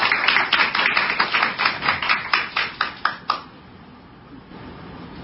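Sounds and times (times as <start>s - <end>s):
crowd applauding: 0.0s - 3.5s.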